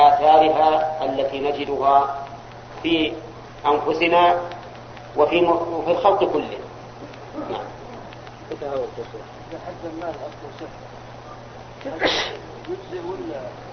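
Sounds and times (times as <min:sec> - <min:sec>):
low steady hum: 0:00.0 - 0:13.7
speech: 0:00.5 - 0:04.6, 0:05.2 - 0:06.7, 0:07.4 - 0:07.8, 0:08.5 - 0:11.0, 0:11.8 - 0:13.7
sneeze during a religious lesson: 0:12.0 - 0:12.4.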